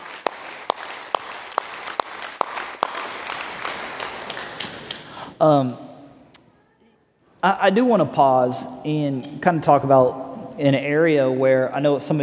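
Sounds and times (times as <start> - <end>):
crowd applause: 0.0 - 5.2
speech: 5.4 - 5.9, 7.4 - 12.2.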